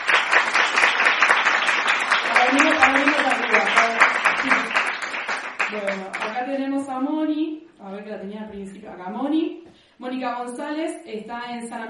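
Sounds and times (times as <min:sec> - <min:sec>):
crowd applauding: 0:00.0 - 0:06.4
speech: 0:06.8 - 0:11.8.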